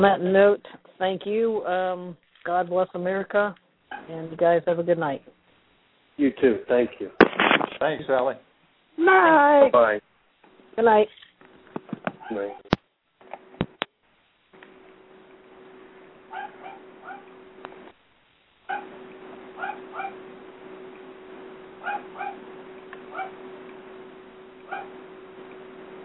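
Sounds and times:
speech: 0:00.0 - 0:05.3, 0:06.2 - 0:07.2, 0:07.8 - 0:10.1, 0:10.8 - 0:11.2, 0:12.3 - 0:12.7
dog barking and whimpering: 0:03.9 - 0:04.1, 0:16.3 - 0:17.3, 0:18.7 - 0:19.0, 0:19.6 - 0:20.2, 0:21.8 - 0:22.4, 0:23.1 - 0:23.4, 0:24.7 - 0:25.0.

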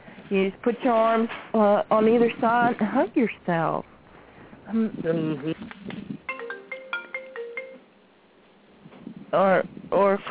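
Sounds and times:
speech: 0:00.3 - 0:03.9, 0:04.7 - 0:06.1, 0:09.3 - 0:10.2
security system doorbell ringing through phone: 0:06.3 - 0:07.8.

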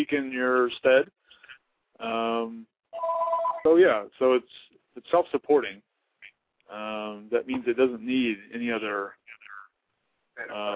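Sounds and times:
speech: 0:00.0 - 0:01.3, 0:02.0 - 0:05.9, 0:06.7 - 0:09.2, 0:10.4 - 0:10.7
telephone ringing with electronic tones: 0:03.0 - 0:03.7.

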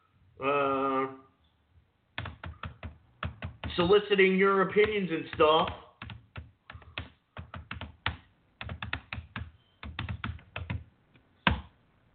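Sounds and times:
typing on a computer keyboard while entering a chat room message: 0:02.2 - 0:03.9, 0:04.8 - 0:11.7
speech: 0:03.8 - 0:05.8.

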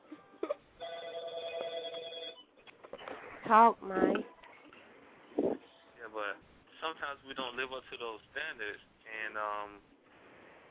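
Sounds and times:
phone ringing: 0:00.3 - 0:02.5
speech: 0:03.5 - 0:04.3, 0:06.3 - 0:09.9.

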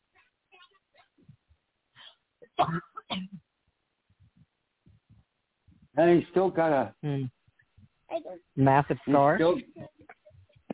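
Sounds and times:
dry coughing: 0:02.0 - 0:03.4
speech: 0:02.6 - 0:02.9, 0:06.0 - 0:07.4, 0:08.3 - 0:09.8.

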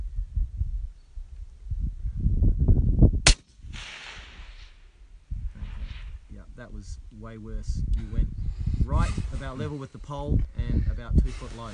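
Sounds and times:
low wind-like rumbling: 0:00.0 - 0:11.7
long-range rifle shot: 0:03.2 - 0:04.9
speech: 0:06.7 - 0:11.7.

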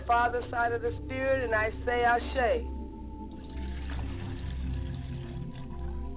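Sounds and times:
speech: 0:00.1 - 0:02.8
liquid poured as a libation: 0:03.2 - 0:06.1.

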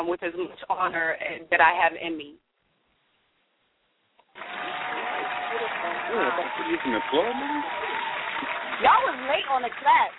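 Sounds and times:
speech: 0:00.0 - 0:02.4, 0:05.5 - 0:10.1
applause sound effect: 0:04.3 - 0:10.1.

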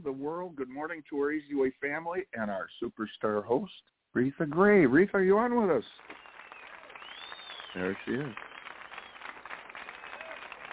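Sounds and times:
speech: 0:00.0 - 0:06.2, 0:07.7 - 0:08.5
applause: 0:05.2 - 0:10.7.

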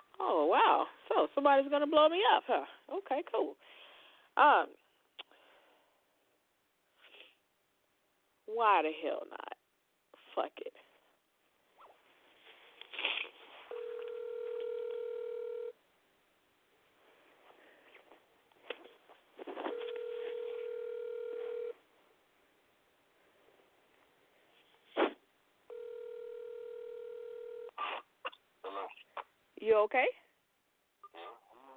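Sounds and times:
speech: 0:00.2 - 0:03.8, 0:04.4 - 0:04.8, 0:08.5 - 0:09.5, 0:10.4 - 0:10.8, 0:29.6 - 0:30.2
phone line ringing: 0:13.7 - 0:15.8, 0:19.6 - 0:21.8, 0:25.7 - 0:27.8
scratchy rustling: 0:17.2 - 0:21.7.

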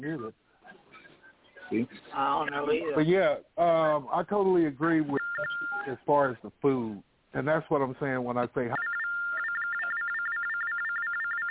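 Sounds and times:
speech: 0:00.0 - 0:00.5, 0:01.7 - 0:09.0
mobile phone ringing: 0:05.1 - 0:05.9, 0:08.7 - 0:11.4.

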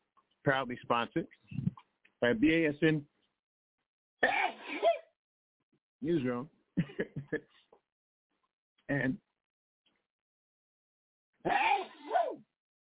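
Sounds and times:
speech: 0:00.4 - 0:01.6, 0:02.2 - 0:03.1, 0:06.0 - 0:07.6, 0:08.9 - 0:09.3, 0:11.4 - 0:11.7
person sneezing: 0:04.2 - 0:05.0, 0:11.5 - 0:12.4.

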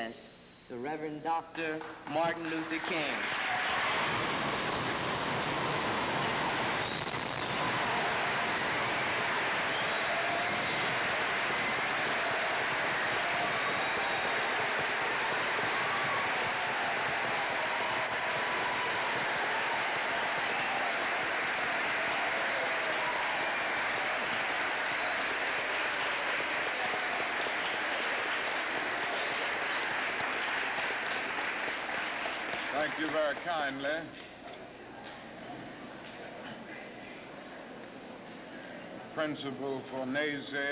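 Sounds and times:
speech: 0:00.1 - 0:03.6, 0:33.3 - 0:34.2, 0:39.2 - 0:40.7
audience applause welcoming the Reverend Dr. Martin Luther King to a sermon: 0:02.1 - 0:33.9.

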